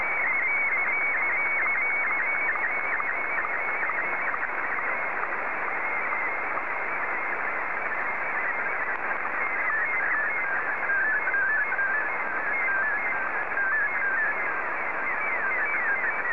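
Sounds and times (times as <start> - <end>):
Martin 1 slow-scan television signal: 0.0 - 16.3.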